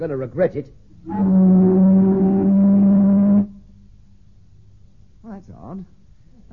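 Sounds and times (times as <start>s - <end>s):
speech: 0.0s - 2.0s, 5.6s - 6.5s
ship's siren blast: 1.1s - 3.6s.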